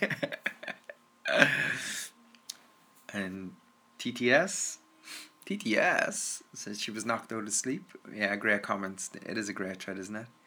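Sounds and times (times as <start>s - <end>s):
speech: 0.0s - 0.4s, 4.0s - 10.4s
person coughing: 1.3s - 2.0s.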